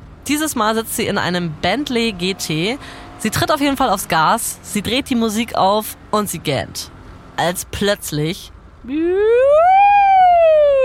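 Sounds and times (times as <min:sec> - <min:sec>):
speech: 0:00.3 - 0:09.8
police car siren: 0:08.9 - 0:10.8.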